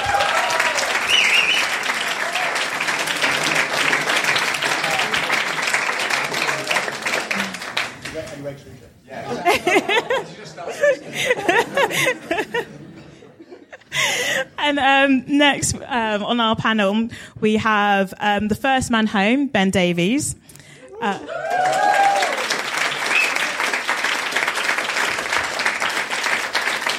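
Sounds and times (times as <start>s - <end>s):
crowd applause: 0.0s - 8.6s, 21.0s - 26.9s
laughter: 2.8s - 7.7s, 9.1s - 14.6s
speech: 15.1s - 20.4s, 21.0s - 21.8s.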